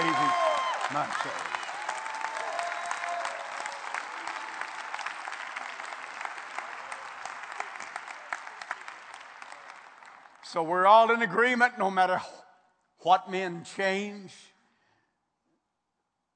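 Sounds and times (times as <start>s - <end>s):
audience clapping hands: 0.0s - 11.2s
speech: 0.9s - 1.5s, 10.5s - 12.4s, 13.0s - 14.5s.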